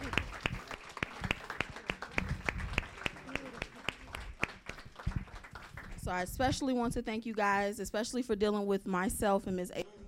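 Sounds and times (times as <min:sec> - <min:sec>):
audience applause: 0:00.0 - 0:06.0
speech: 0:06.1 - 0:09.8.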